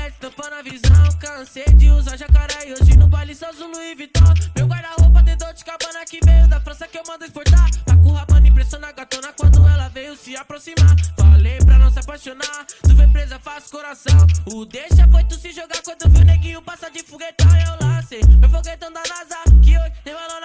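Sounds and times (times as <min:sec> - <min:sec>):
deep bass: 0:00.8 - 0:03.3, 0:04.2 - 0:05.5, 0:06.2 - 0:06.7, 0:07.5 - 0:08.8, 0:09.4 - 0:09.9, 0:10.8 - 0:12.2, 0:12.8 - 0:13.4, 0:14.1 - 0:15.4, 0:16.1 - 0:16.6, 0:17.4 - 0:18.8, 0:19.5 - 0:19.9.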